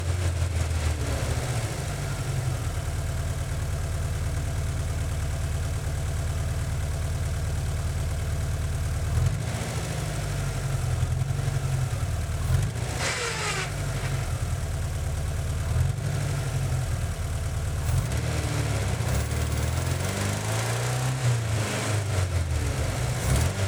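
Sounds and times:
1978 Volkswagen Van engine starting, driving, reversing and stopping, onboard: 0.0s - 23.6s.

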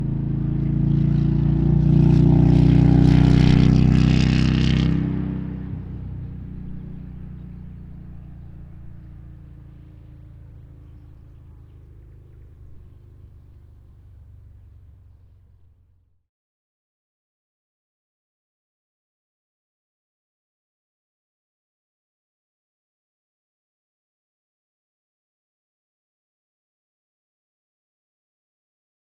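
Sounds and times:
distant 2004 Harley Davidson Night Train motorcycle starting and pulling away on ramps: 0.0s - 16.2s.

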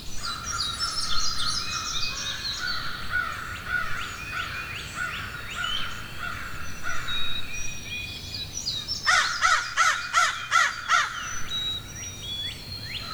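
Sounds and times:
crows in a forest: 0.2s - 7.3s, 9.1s - 11.5s, 13.0s - 13.1s.

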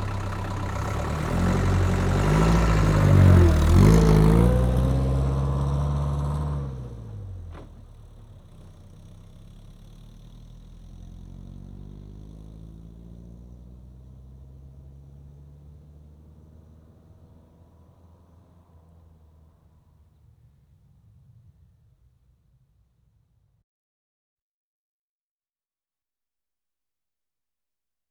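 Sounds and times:
Land Rover Safari diesel engine starting: 0.0s - 12.8s.

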